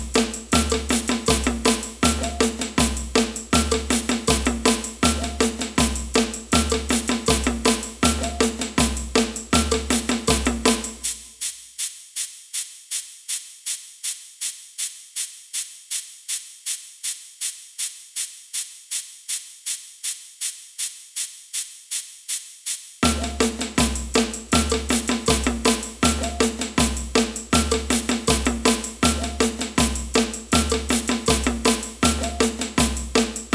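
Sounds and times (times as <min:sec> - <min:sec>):
samba band playing: 0:00.0 - 0:11.1, 0:23.0 - 0:33.5
ganza shaker in samba band: 0:00.0 - 0:33.5.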